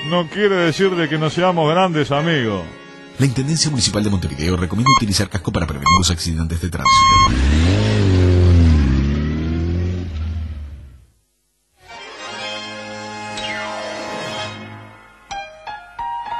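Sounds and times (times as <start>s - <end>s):
speech: 0.1s - 8.1s
motorcycle engine revving: 7.0s - 11.0s.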